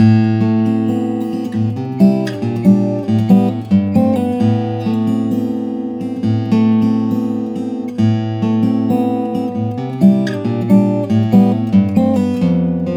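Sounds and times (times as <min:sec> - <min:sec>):
steel string flattop guitar of Macassar ebony and redwood: 0:00.0 - 0:12.9.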